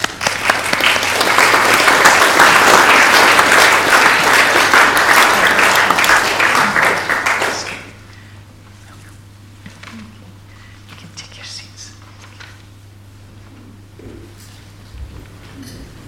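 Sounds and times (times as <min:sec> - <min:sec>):
crowd applause: 0:00.0 - 0:08.0.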